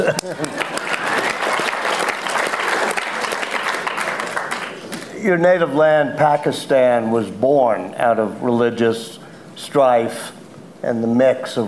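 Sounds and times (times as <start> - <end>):
speech: 0.0 - 0.9, 5.2 - 11.6
laughter: 0.0 - 1.7
audience applause: 0.0 - 4.9.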